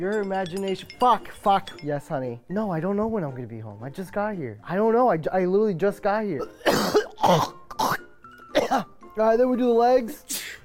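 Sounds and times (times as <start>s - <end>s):
speech: 0.0s - 7.9s, 8.7s - 10.4s
person sneezing: 6.4s - 8.0s, 8.6s - 8.9s, 10.3s - 10.6s.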